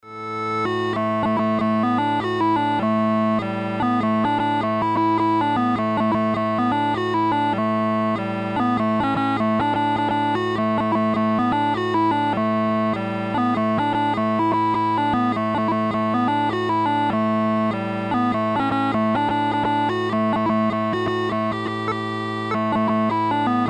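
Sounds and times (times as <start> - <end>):
jig tune: 0.0 - 23.6.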